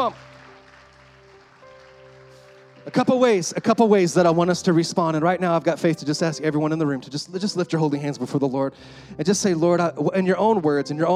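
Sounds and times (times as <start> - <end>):
speech: 0.0 - 0.3, 2.8 - 11.1
congregation clapping in a church service: 0.0 - 4.8.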